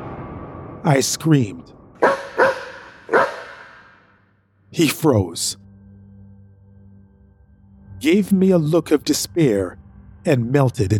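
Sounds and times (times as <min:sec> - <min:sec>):
speech: 0:00.8 - 0:02.3, 0:04.8 - 0:05.6, 0:08.0 - 0:10.9
dog barking: 0:02.0 - 0:03.9.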